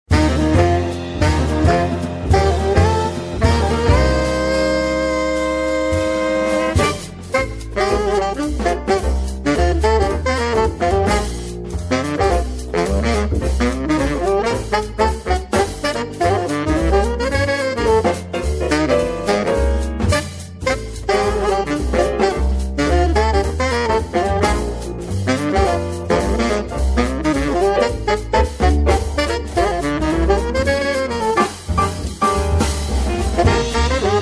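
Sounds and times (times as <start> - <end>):
blues music: 0.1 - 34.2.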